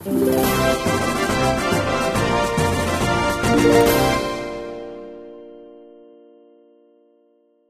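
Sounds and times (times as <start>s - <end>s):
victory jingle: 0.0s - 5.1s.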